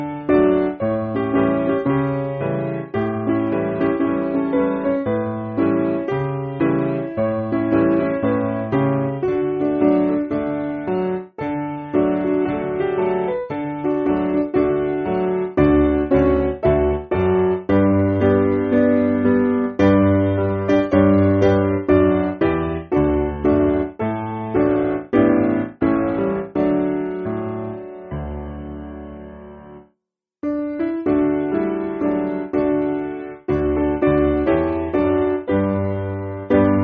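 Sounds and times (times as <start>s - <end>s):
piano backing music for churches: 0.0s - 36.8s.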